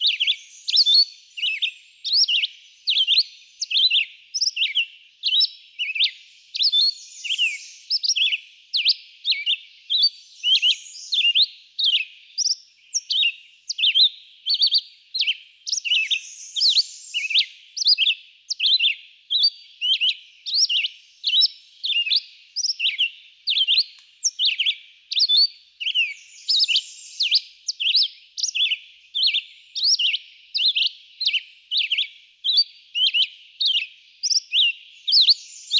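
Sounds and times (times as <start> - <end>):
Red-eyed Vireo: 0.0 - 35.7.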